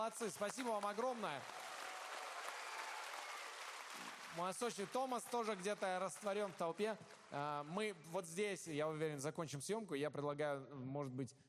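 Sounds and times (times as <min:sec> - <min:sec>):
speech: 0:00.0 - 0:01.6, 0:04.4 - 0:11.4
group applauding each other: 0:00.0 - 0:07.8.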